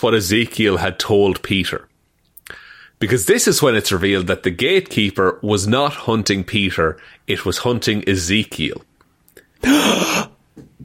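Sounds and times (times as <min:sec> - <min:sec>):
speech: 0:00.0 - 0:01.9, 0:02.5 - 0:08.9, 0:09.6 - 0:10.3
person gasping: 0:02.4 - 0:03.0, 0:09.4 - 0:10.4.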